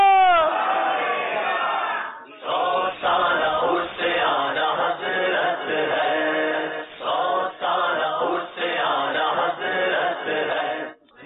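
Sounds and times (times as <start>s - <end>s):
person calling out a drawn-out call falling in pitch: 0.0s - 0.5s
crowd chanting a slogan at a points-based competition event: 0.2s - 11.2s.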